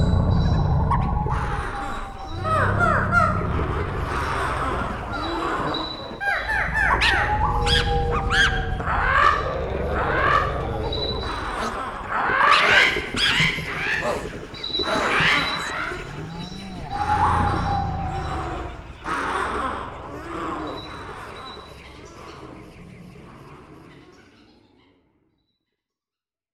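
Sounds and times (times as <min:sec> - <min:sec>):
nighttime ambience: 0:00.0 - 0:22.9.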